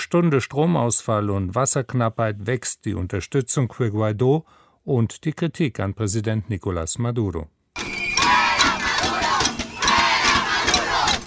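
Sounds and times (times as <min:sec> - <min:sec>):
speech: 0:00.1 - 0:07.6
angry crowd shouting: 0:07.8 - 0:11.2.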